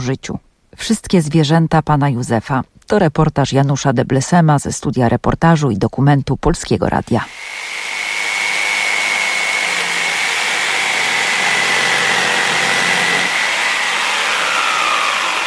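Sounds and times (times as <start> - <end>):
speech: 0.0 - 7.6
electric jigsaw used for wood carving running: 7.2 - 15.4.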